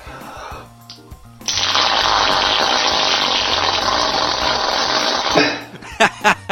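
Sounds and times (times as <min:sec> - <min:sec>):
wound expelling pus with fart-like squelch: 0:01.4 - 0:05.6
laughter: 0:05.6 - 0:06.5.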